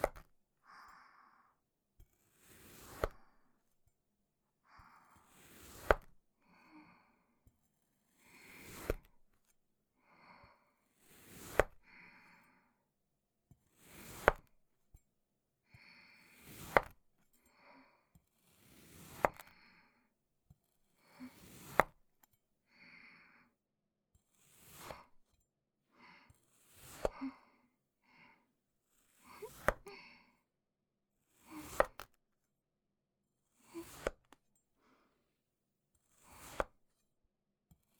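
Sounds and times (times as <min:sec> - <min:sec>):
cutting sand clay: 0:02.4 - 0:03.3, 0:05.3 - 0:06.1, 0:08.5 - 0:09.1, 0:11.1 - 0:11.8, 0:13.8 - 0:14.5, 0:16.4 - 0:16.9, 0:18.5 - 0:19.6, 0:21.3 - 0:22.0, 0:24.5 - 0:25.1, 0:26.6 - 0:27.2, 0:29.1 - 0:29.9, 0:31.4 - 0:32.1, 0:33.7 - 0:34.3, 0:36.1 - 0:36.8.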